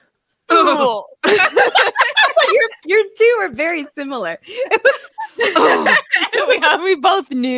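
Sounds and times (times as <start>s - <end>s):
man imitating an exhausted grunt: 0.5s - 1.2s
laughter: 1.2s - 2.9s, 4.5s - 6.8s
speech: 3.4s - 7.5s.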